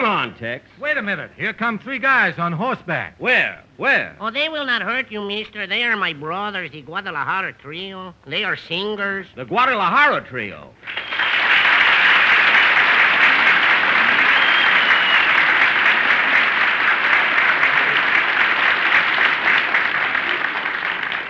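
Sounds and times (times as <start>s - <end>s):
speech: 0.2s - 11.3s
applause: 10.8s - 21.2s.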